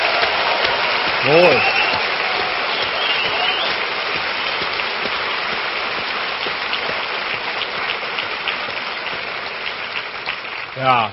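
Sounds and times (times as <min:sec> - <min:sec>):
audience applause: 0:00.0 - 0:11.1
speech: 0:01.2 - 0:01.8, 0:10.8 - 0:11.1.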